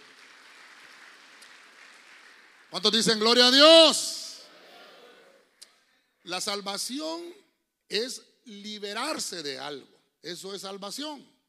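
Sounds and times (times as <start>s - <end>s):
church congregation clapping loudly: 0.0s - 4.0s
speech: 2.7s - 4.2s, 6.3s - 11.3s.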